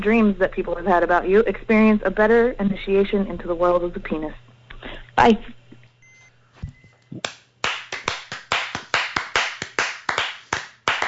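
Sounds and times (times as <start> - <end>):
speech: 0.0 - 5.6, 7.1 - 7.4
people applauding: 7.2 - 11.0.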